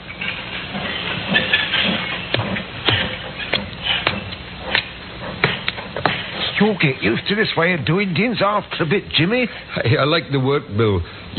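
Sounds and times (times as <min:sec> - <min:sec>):
low rumbling of trains: 0:00.0 - 0:06.8
steady steam hiss in a railroad yard: 0:00.0 - 0:07.8
speech: 0:06.6 - 0:11.3.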